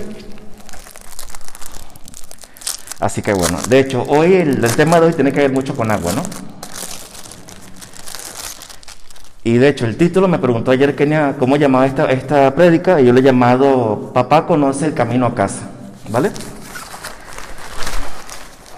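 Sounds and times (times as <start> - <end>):
plastic raincoat crinkling as it's put on: 0.0 - 9.5, 16.0 - 18.7
speech: 3.0 - 6.5, 9.5 - 16.5.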